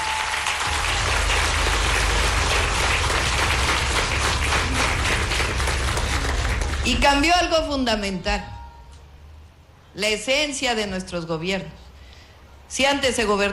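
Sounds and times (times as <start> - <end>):
audience applause: 0.0 - 7.2
speech: 6.9 - 8.6, 10.0 - 11.8, 12.7 - 13.5.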